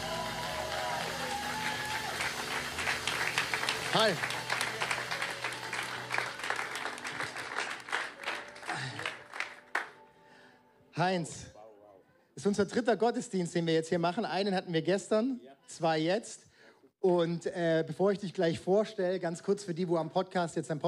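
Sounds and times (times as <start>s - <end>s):
audience applause and standing ovation: 0.0s - 10.0s
speech: 3.9s - 4.4s, 11.0s - 11.5s, 12.4s - 20.8s.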